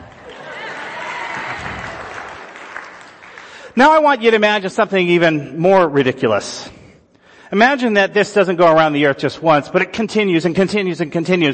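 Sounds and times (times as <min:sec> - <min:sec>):
applause: 0:00.0 - 0:03.8
speech: 0:03.8 - 0:06.8, 0:07.5 - 0:11.5.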